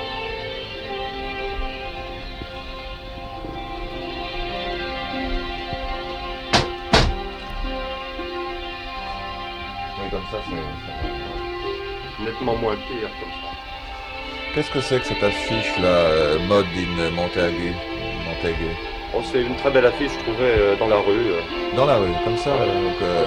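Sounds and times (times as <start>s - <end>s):
music: 0.0s - 23.2s
window being shut: 6.5s - 7.3s
low voices: 9.9s - 23.2s
speech: 10.3s - 11.2s, 12.2s - 13.6s, 14.6s - 23.2s.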